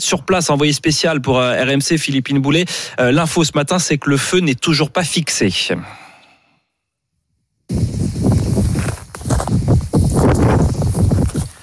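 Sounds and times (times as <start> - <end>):
speech: 0.0 - 6.0
wind buffeting a microphone: 7.7 - 11.5.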